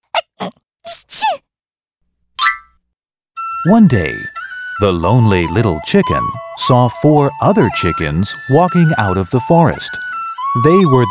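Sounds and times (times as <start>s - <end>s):
sneezing: 0.0s - 1.4s
speech: 3.6s - 11.0s.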